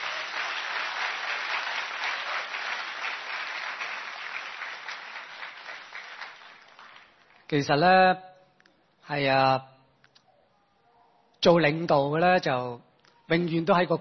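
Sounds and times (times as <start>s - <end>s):
audience applause: 0.0s - 7.5s
speech: 7.5s - 8.3s, 9.1s - 9.7s, 11.4s - 13.9s.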